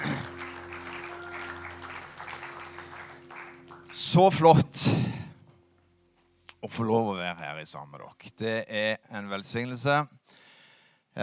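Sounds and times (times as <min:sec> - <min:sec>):
audience applause: 0:00.0 - 0:04.5
speech: 0:04.1 - 0:05.1, 0:06.8 - 0:10.4.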